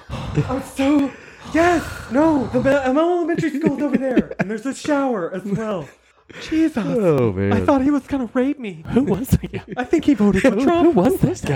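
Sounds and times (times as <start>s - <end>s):
vocal imitation of heavy breathing: 0.0s - 4.5s, 5.7s - 7.9s
laughter: 0.0s - 7.9s, 8.9s - 11.5s
speech: 0.4s - 11.5s.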